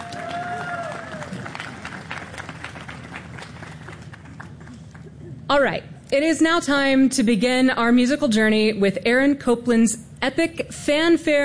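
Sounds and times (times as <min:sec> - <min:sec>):
faint cheering voices: 0:00.0 - 0:01.6
audience clapping: 0:00.0 - 0:05.3
speech: 0:05.5 - 0:11.4.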